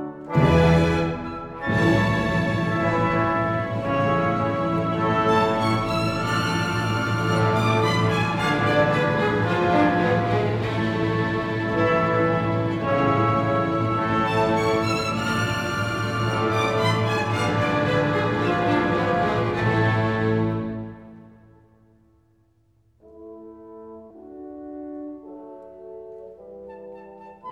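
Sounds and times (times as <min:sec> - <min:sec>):
violin concerto in B minor adagio movement: 0:00.2 - 0:21.3.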